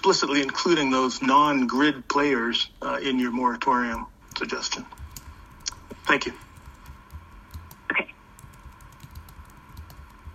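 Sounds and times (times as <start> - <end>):
speech: 0.0 - 5.0, 6.1 - 6.4
faint typing on a computer keyboard taking notes during a meeting: 4.2 - 10.3.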